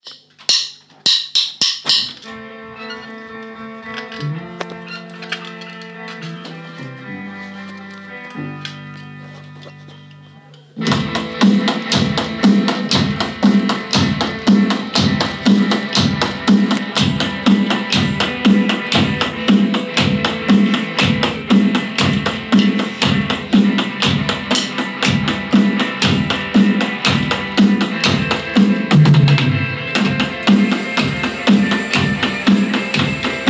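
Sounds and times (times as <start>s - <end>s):
live drums in four-four time: 10.8s - 33.4s.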